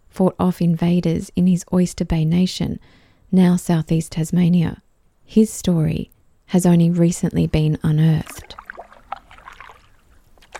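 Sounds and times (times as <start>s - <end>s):
speech: 0.2s - 8.6s
water dripping: 7.4s - 10.5s
kayak paddles dipping and pulling through water: 7.9s - 10.5s.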